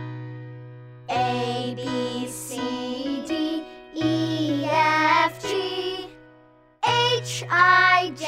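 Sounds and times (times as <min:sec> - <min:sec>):
person singing: 0:01.1 - 0:06.2, 0:06.8 - 0:08.2.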